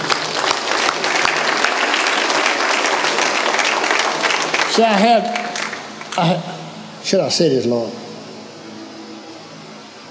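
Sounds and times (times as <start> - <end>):
audience applause: 0.0 - 6.3
speech: 4.8 - 5.4, 6.2 - 8.0.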